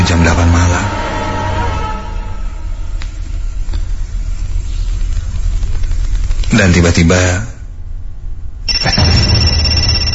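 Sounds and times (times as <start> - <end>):
low hum: 0.0 - 6.5, 7.5 - 10.1
speech: 6.6 - 7.5
telephone ringing with a bright electronic ring: 8.7 - 10.1.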